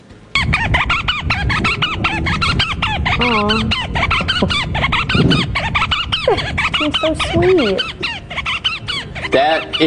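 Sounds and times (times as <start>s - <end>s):
female African pygmy falcon calling: 0.4s - 9.8s
speech: 3.3s - 4.5s, 6.3s - 8.0s, 9.3s - 9.8s.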